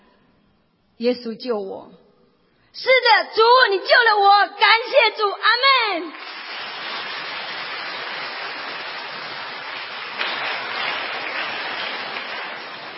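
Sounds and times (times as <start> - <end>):
speech: 1.0 - 2.0, 2.8 - 6.4
audience applauding: 6.1 - 12.9.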